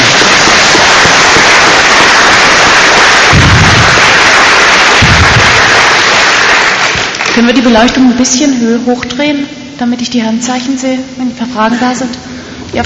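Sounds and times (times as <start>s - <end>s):
audience applause: 0.0s - 7.6s
speech: 7.4s - 12.8s.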